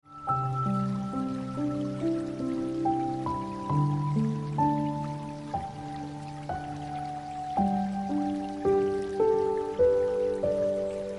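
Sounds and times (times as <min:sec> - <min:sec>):
piano ringtone music: 0:00.0 - 0:11.1.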